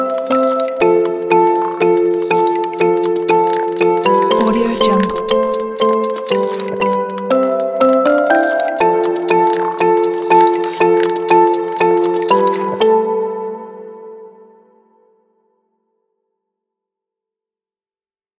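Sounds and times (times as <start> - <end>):
abstract technology sounds: 0.0 - 12.8.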